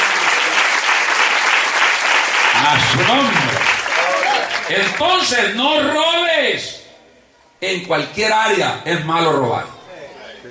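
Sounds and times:
audience applauding: 0.0s - 5.3s
speech: 2.7s - 3.5s, 4.7s - 6.8s, 7.6s - 9.7s.

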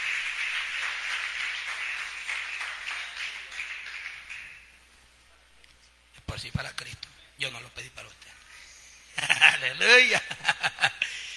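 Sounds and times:
audience applause: 0.0s - 4.7s
speech: 6.4s - 8.4s, 9.4s - 11.0s.

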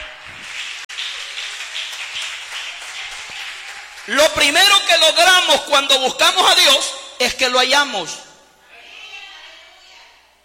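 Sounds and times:
audience applauding: 0.0s - 5.3s
speech: 4.1s - 8.2s.

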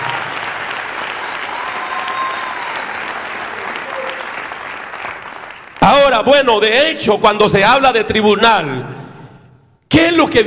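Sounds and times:
audience applause: 0.0s - 5.8s
speech: 6.1s - 9.0s, 9.9s - 10.4s.

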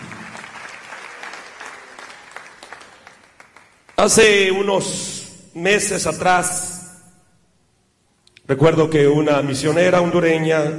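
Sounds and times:
auditorium audience applause: 0.0s - 4.0s
speech: 4.0s - 6.7s, 8.5s - 10.7s.

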